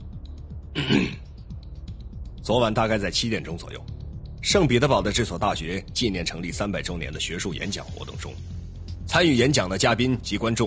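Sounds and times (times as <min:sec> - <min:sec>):
throat clearing: 0:00.8 - 0:01.2
speech: 0:02.5 - 0:03.9, 0:04.5 - 0:08.5, 0:09.1 - 0:10.6.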